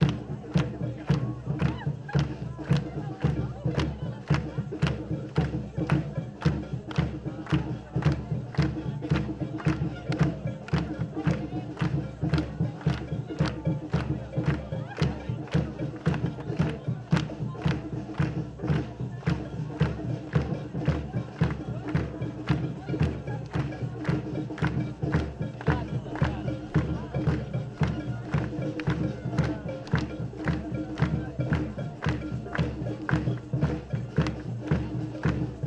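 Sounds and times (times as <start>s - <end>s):
crowd at a demonstration: 0.0s - 35.6s.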